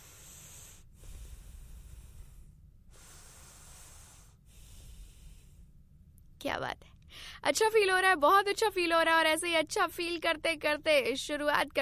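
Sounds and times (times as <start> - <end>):
deep breathing exercise: 0.0 - 6.0
speech: 6.4 - 11.8.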